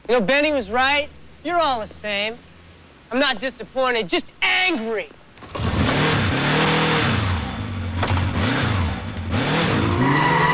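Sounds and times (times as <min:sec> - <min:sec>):
speech: 0:00.1 - 0:02.5, 0:03.1 - 0:05.6
motorbike roaring off: 0:05.4 - 0:10.5.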